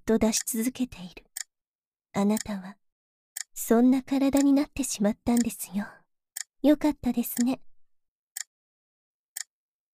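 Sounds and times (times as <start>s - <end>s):
speech: 0.1s - 1.2s, 2.1s - 2.8s, 3.6s - 6.0s, 6.6s - 7.7s
clock ticking: 0.3s - 1.5s, 2.2s - 2.7s, 3.4s - 5.7s, 6.4s - 7.6s.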